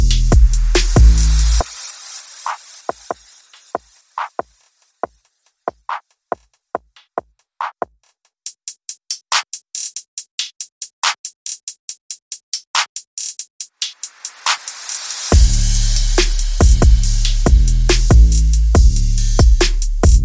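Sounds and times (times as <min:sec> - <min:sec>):
bass: 0:00.0 - 0:01.6, 0:15.3 - 0:20.2
drums: 0:00.0 - 0:20.2.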